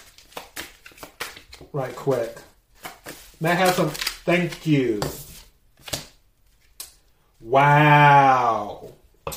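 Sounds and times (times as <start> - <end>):
tarot cards being drawn from a deck: 0.1 - 1.7, 2.8 - 5.1
speech: 1.7 - 2.5, 3.4 - 5.2, 7.5 - 9.0.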